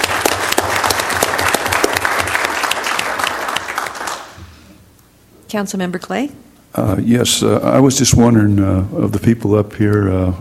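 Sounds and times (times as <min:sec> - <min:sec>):
audience applause at a council meeting: 0:00.0 - 0:04.4
speech: 0:05.5 - 0:10.3.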